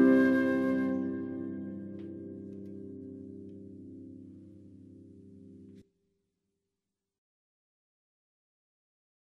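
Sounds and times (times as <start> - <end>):
flute: 0.0 - 2.4
harp: 0.0 - 5.8.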